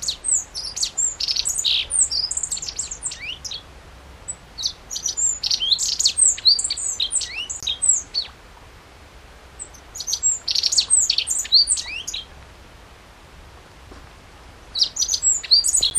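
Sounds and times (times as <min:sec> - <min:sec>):
Godlewski's bunting singing: 0:00.0 - 0:03.7, 0:04.3 - 0:08.4, 0:09.6 - 0:12.4, 0:14.7 - 0:15.9.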